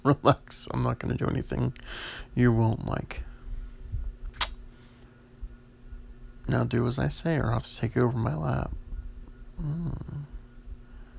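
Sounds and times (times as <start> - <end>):
speech: 0.0 - 3.3, 6.5 - 8.8, 9.6 - 10.3
person whimpering: 9.6 - 10.4.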